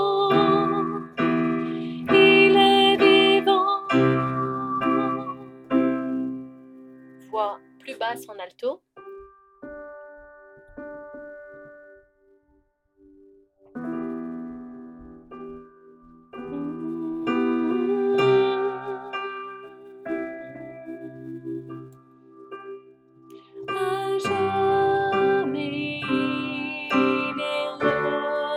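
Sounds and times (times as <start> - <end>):
alto voice: 0.0 - 6.5, 16.4 - 21.8, 23.7 - 28.5.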